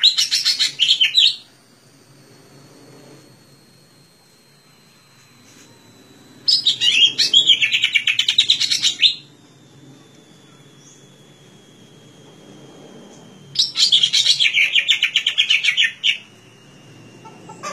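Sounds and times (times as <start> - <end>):
leafbird singing chirping warbled notes: 0.0 - 1.5, 6.5 - 9.3, 10.3 - 11.4, 13.4 - 16.5.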